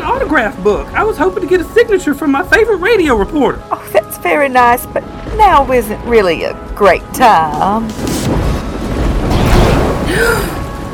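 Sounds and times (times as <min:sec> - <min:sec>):
speech: 0:00.3 - 0:08.2, 0:10.1 - 0:10.6
lightning strike crackling roar with deep rumbling: 0:08.0 - 0:10.9.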